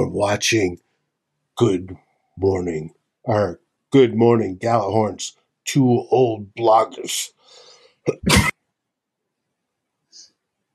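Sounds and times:
speech: 0:00.0 - 0:00.8, 0:01.6 - 0:08.6
cough from a dry throat: 0:08.1 - 0:08.5.

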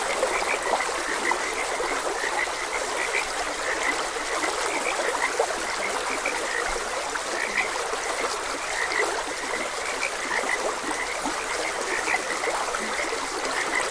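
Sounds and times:
flowing stream water: 0:00.0 - 0:13.8
frog chorus croaking: 0:00.0 - 0:13.8.

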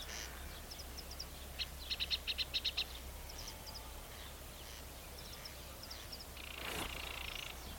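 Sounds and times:
corncrake calling: 0:00.0 - 0:07.7.

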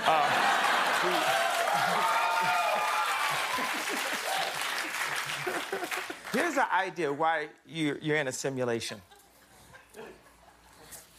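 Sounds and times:
audience clapping: 0:00.0 - 0:06.7
speech: 0:06.3 - 0:09.1.

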